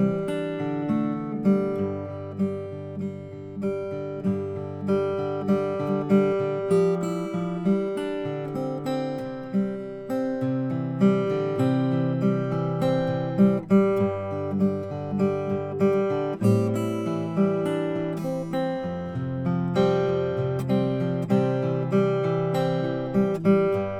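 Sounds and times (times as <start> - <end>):
OM Madagascar rosewood acoustic guitar: 0.0 - 23.9.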